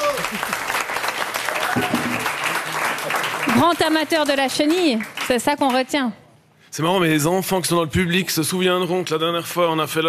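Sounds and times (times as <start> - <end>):
audience applause: 0.0 - 5.5
speech: 3.6 - 10.0.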